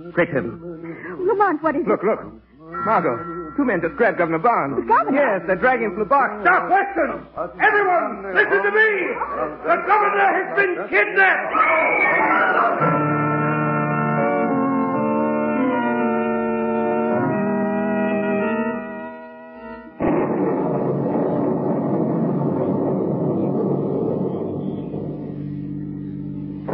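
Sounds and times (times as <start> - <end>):
speech: 0.0 - 12.9
sustained droning chord of tones: 2.6 - 4.9, 12.8 - 26.7
thunderstorm thunder: 20.0 - 25.4.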